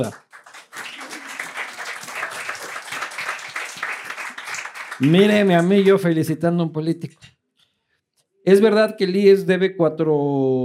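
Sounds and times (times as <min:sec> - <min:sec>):
speech: 0:00.0 - 0:00.2, 0:05.0 - 0:07.2, 0:08.4 - 0:10.6
crowd applauding: 0:00.0 - 0:06.3.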